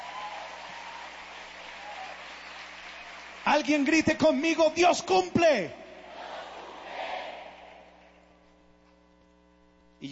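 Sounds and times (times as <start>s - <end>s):
audience applauding: 0.0s - 4.9s
speech: 3.5s - 5.8s.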